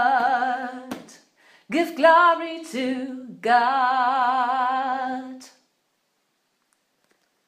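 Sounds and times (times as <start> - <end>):
soprano gospel choir singing: 0.0 - 5.6.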